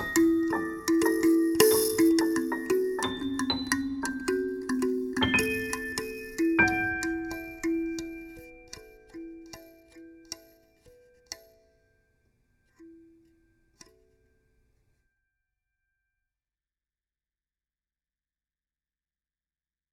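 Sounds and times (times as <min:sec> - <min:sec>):
kalimba: 0:00.0 - 0:11.6.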